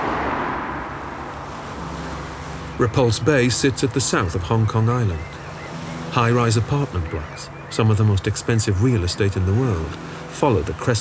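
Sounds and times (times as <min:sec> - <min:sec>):
taxi engine and tyre road rumble driving toward Repulse Bay: 0:00.0 - 0:05.6
wind: 0:00.0 - 0:10.9
speech: 0:02.8 - 0:05.4, 0:06.1 - 0:10.9.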